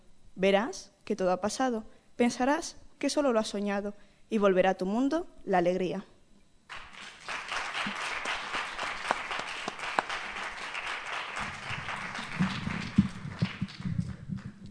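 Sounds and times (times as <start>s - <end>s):
speech: 0.4s - 6.1s
audience applause: 6.7s - 14.6s.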